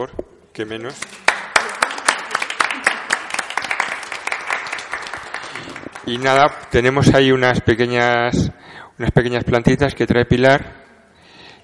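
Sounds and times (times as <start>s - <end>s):
speech: 0.0s - 1.2s, 6.0s - 10.7s
audience applause: 1.2s - 6.6s.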